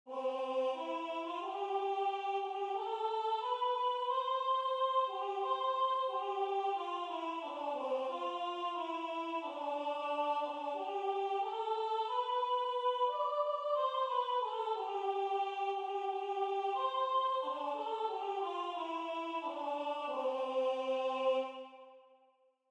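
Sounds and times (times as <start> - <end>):
soprano singing: 0.1 - 21.7.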